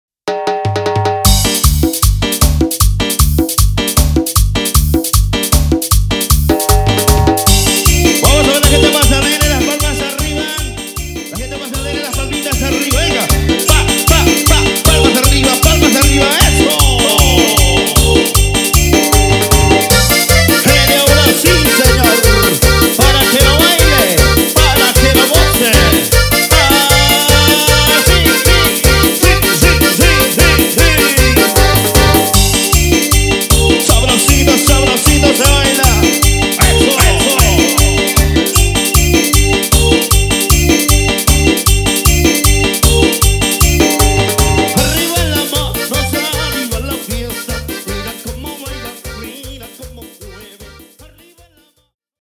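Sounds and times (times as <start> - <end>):
instrumental cover song: 0.3 - 51.6.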